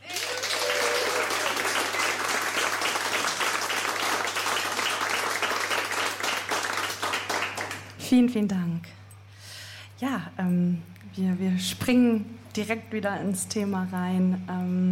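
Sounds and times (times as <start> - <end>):
audience applause: 0.0 - 8.0
speech: 8.1 - 9.0, 10.0 - 14.9.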